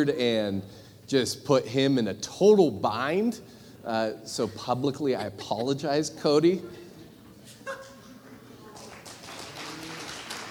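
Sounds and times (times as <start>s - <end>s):
speech: 0.0s - 6.8s
audience applause: 8.8s - 10.4s.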